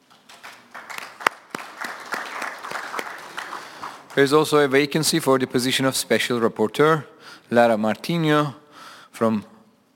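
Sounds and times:
committee applauding to elect by acclamation: 0:00.0 - 0:05.0
speech: 0:04.2 - 0:08.6, 0:09.2 - 0:09.5.

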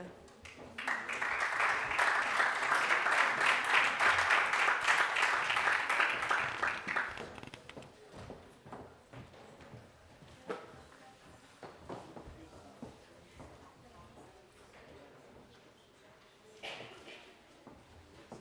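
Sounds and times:
audience applause: 0:00.8 - 0:07.6.

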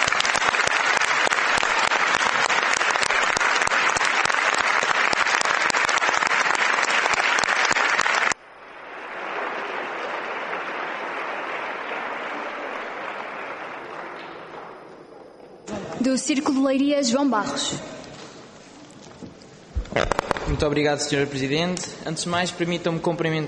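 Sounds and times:
applause from an assembly: 0:00.0 - 0:15.7
speech: 0:16.2 - 0:18.0, 0:20.6 - 0:23.4.

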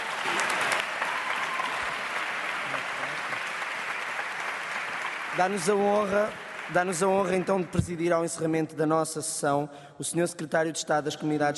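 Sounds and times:
audience applause: 0:00.0 - 0:07.7
speech: 0:05.4 - 0:11.5.

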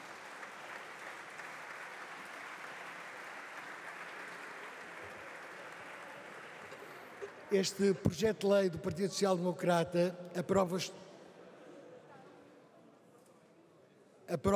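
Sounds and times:
applause in parliament chamber: 0:00.0 - 0:07.9
speech: 0:07.5 - 0:11.0, 0:14.3 - 0:14.5.

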